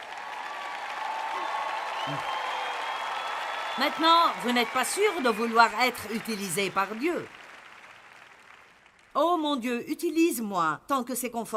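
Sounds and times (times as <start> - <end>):
audience applause: 0.0 - 9.1
speech: 2.1 - 2.4, 3.8 - 7.4, 9.2 - 11.5.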